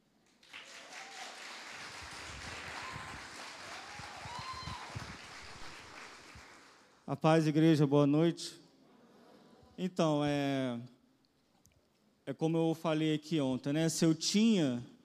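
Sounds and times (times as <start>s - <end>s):
audience applause: 0.4s - 7.0s
speech: 7.1s - 8.6s, 9.8s - 10.9s, 12.3s - 14.9s.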